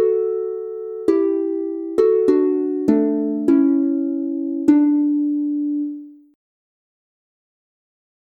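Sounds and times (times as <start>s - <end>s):
harp instrumental in D major: 0.0s - 6.4s.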